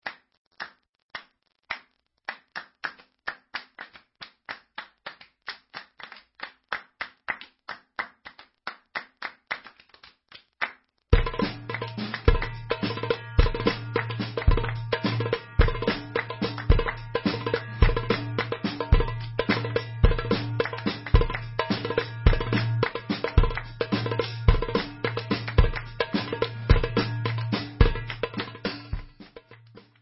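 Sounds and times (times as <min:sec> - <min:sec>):
debka instrumental music: 0:11.2 - 0:29.9.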